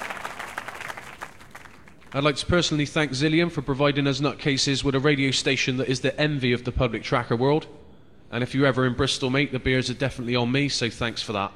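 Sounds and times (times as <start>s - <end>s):
applause: 0.0s - 2.2s
speech: 2.1s - 11.5s.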